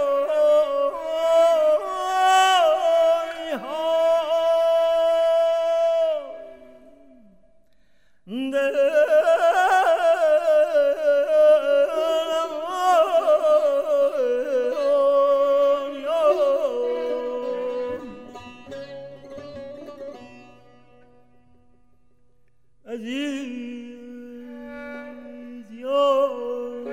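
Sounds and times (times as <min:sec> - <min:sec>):
oceanic chant: 0:00.0 - 0:07.4, 0:08.3 - 0:18.3, 0:22.9 - 0:26.9.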